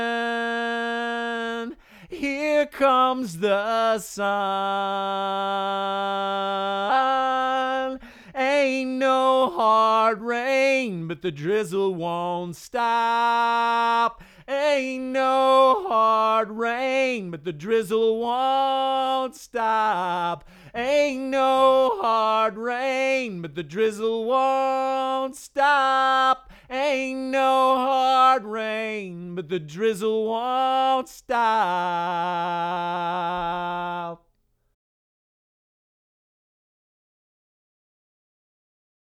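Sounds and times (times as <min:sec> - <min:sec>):
person singing lead vocal: 0:00.0 - 0:34.3.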